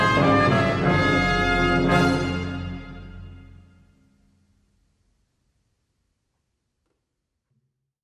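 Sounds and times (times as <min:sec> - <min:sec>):
fanfare: 0:00.0 - 0:03.7.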